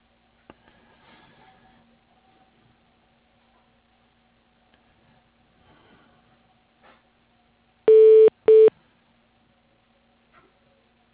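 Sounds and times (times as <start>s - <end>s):
telephone dialing beeps while paging someone: 7.9s - 8.7s.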